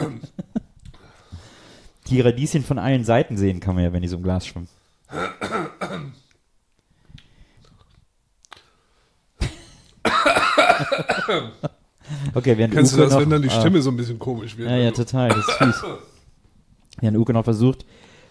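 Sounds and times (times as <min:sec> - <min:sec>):
coughing fit after choking on food: 0:00.0 - 0:00.4, 0:05.1 - 0:06.3, 0:09.4 - 0:11.7, 0:14.9 - 0:16.2
speech: 0:02.1 - 0:06.1, 0:11.3 - 0:16.1, 0:17.0 - 0:18.1.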